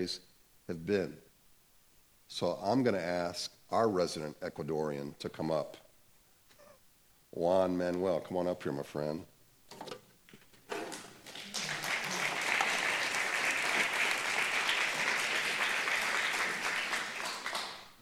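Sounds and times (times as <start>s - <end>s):
speech: 0.0s - 1.2s, 2.3s - 5.8s, 7.3s - 9.9s
church audience applause: 10.8s - 18.0s.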